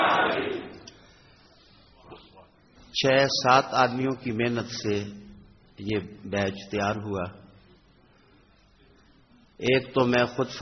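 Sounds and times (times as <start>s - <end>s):
crowd shouting religious slogans in unison: 0.0s - 0.8s
speech: 3.0s - 7.4s, 9.6s - 10.5s.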